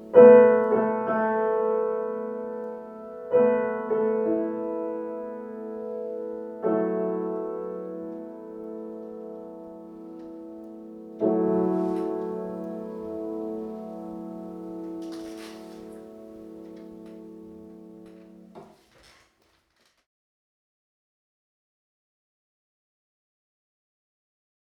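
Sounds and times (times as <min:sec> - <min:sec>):
piano: 0:00.0 - 0:19.2.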